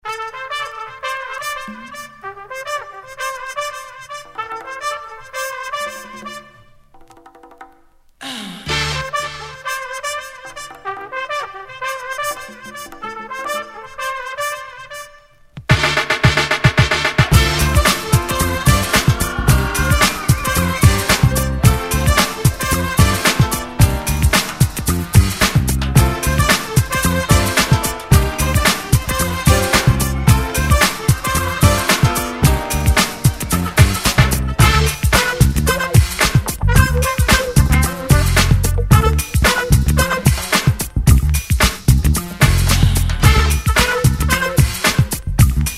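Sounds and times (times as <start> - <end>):
disco music: 8.7 - 9.6, 15.6 - 45.7.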